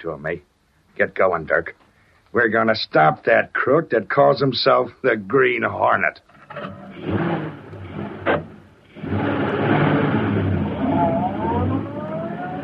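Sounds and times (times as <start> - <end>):
speech: 0.0 - 7.1
car engine starting and driving off: 6.5 - 12.6.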